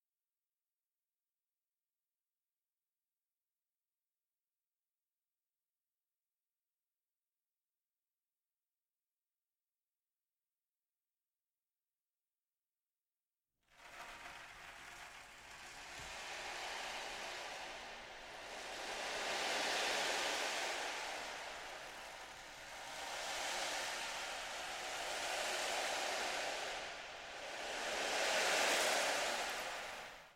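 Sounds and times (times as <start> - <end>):
ocean drum: 13.8 - 30.3.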